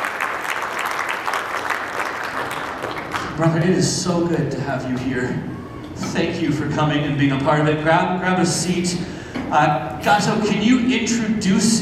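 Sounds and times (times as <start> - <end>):
audience applause: 0.0 - 3.6
speech: 3.4 - 11.7.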